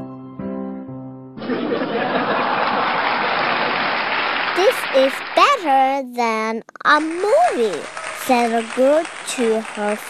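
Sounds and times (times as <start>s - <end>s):
audience laughing: 1.4s - 4.9s
audience clapping: 1.4s - 5.9s, 6.9s - 10.0s
speech: 4.6s - 10.0s.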